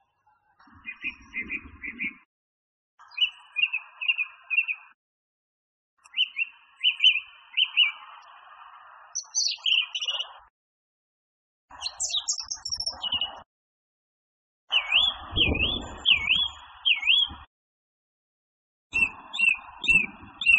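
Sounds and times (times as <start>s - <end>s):
song thrush song: 0.0s - 2.3s, 3.0s - 5.0s, 6.0s - 10.5s, 11.7s - 13.5s, 14.7s - 17.5s, 18.9s - 20.5s.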